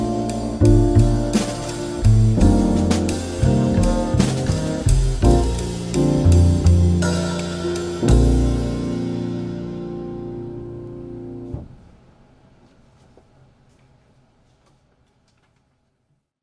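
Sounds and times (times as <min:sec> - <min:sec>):
jazz trio playing slow bossa: 0:00.0 - 0:11.6.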